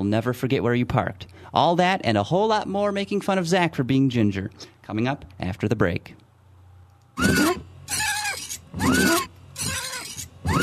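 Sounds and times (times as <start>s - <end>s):
speech: 0.0s - 6.2s, 7.2s - 7.5s
windshield wipers squeaking across the glass: 7.2s - 10.6s.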